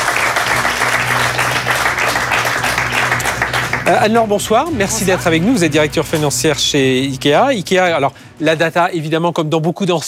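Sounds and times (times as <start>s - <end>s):
audience applause: 0.0s - 6.5s
speech: 3.9s - 10.0s.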